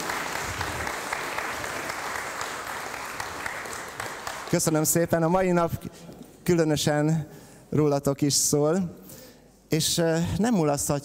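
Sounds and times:
audience applause: 0:00.0 - 0:04.9
speech: 0:04.5 - 0:09.1, 0:09.7 - 0:11.0.

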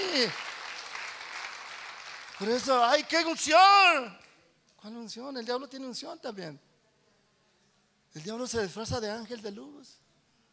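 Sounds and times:
audience applause: 0:00.0 - 0:03.1
speech: 0:00.2 - 0:00.5, 0:02.4 - 0:04.2, 0:04.8 - 0:06.7, 0:08.1 - 0:10.0.

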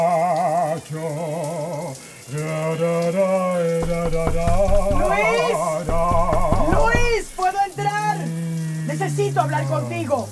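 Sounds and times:
man singing in the shower: 0:00.0 - 0:07.8
shower water running: 0:00.0 - 0:10.3
speech: 0:09.1 - 0:10.3.

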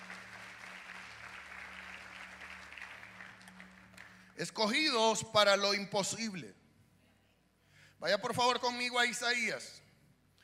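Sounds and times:
audience applause: 0:00.0 - 0:04.4
speech: 0:04.4 - 0:06.6, 0:08.0 - 0:09.8.

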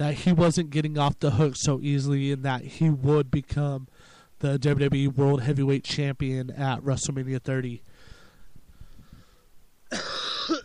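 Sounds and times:
speech: 0:00.0 - 0:07.9
harsh cough: 0:09.9 - 0:10.6.

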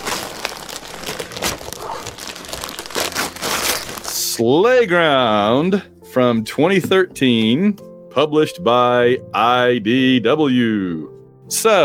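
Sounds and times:
wrapping paper crinkling as a gift-wrapped present is unwrapped: 0:00.0 - 0:04.4
speech: 0:04.4 - 0:11.8.

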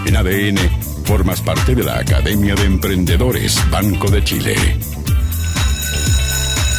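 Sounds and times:
speech: 0:00.1 - 0:05.2
school bell ringing: 0:05.2 - 0:06.7.

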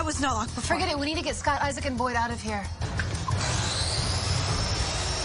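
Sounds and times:
speech: 0:00.2 - 0:02.8
powered saw whirring: 0:03.2 - 0:05.2.

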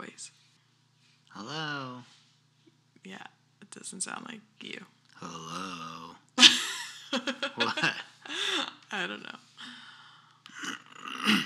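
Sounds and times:
speech: 0:00.0 - 0:00.4, 0:01.3 - 0:02.2, 0:03.0 - 0:05.8, 0:07.2 - 0:09.8, 0:11.3 - 0:11.4
laughter: 0:06.4 - 0:08.6
person clearing throat: 0:10.6 - 0:11.4.

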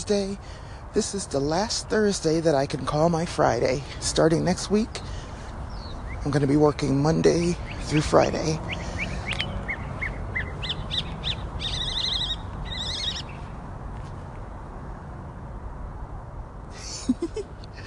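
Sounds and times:
steady hiss: 0:00.0 - 0:17.8
speech: 0:00.1 - 0:05.2, 0:06.2 - 0:08.8
birds calling outdoors during a morning walk to work: 0:03.6 - 0:13.6.

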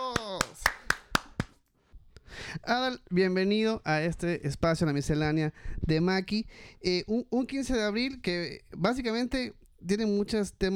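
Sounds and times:
applause: 0:00.0 - 0:01.6
speech: 0:02.5 - 0:10.7.

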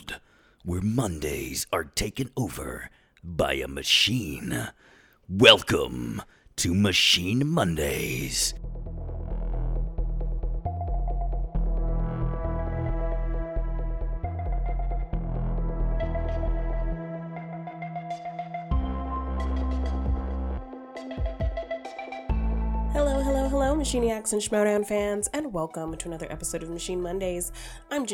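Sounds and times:
speech: 0:00.6 - 0:08.7, 0:23.9 - 0:28.1
electronic podcast theme music with heavy throbbing bass: 0:07.9 - 0:27.5.

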